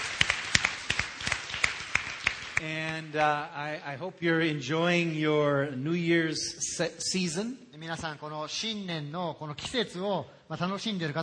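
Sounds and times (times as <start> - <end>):
audience clapping at a New Year church gathering in Akarenga: 0.0 - 3.4
speech: 2.6 - 11.2.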